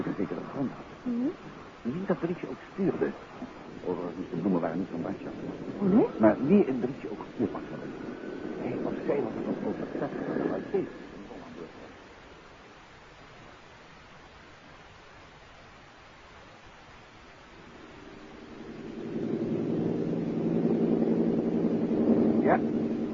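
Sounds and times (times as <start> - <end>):
airplane engine droning in flight before landing: 0.0 - 12.2, 17.5 - 23.1
speech: 0.6 - 11.2.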